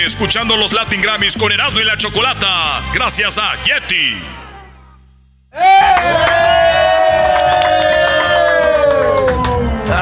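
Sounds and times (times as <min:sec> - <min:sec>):
speech: 0:00.0 - 0:04.5, 0:05.5 - 0:06.4
high yells: 0:05.5 - 0:09.4
crowd shouting and cheering: 0:05.5 - 0:10.0.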